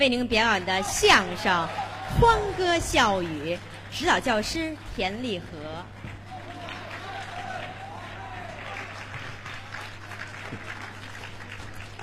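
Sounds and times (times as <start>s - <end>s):
speech: 0.0s - 6.0s
audience applause: 1.0s - 4.7s, 5.9s - 12.0s.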